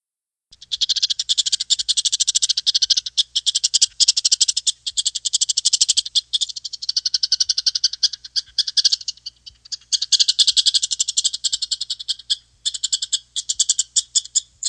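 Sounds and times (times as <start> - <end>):
chipmunk chatter: 0.5 - 14.6.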